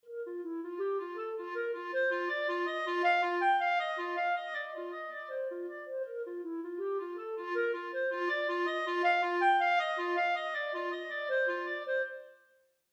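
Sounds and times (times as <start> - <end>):
clarinet: 0.0 - 12.7.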